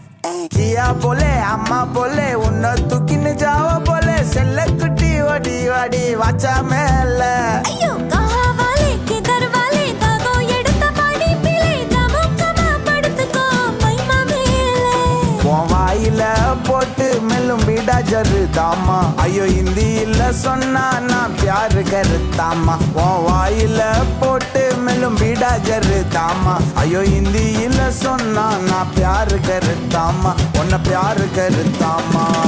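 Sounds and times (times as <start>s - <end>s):
Tamil love song: 0.3s - 32.4s.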